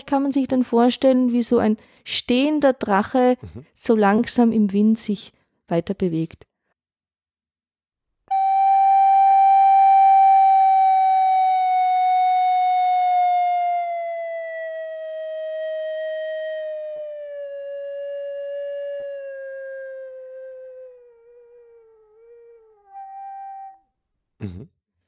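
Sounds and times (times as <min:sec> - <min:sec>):
speech: 0:00.1 - 0:06.5
slow rising glissando played on instrument: 0:08.3 - 0:23.8.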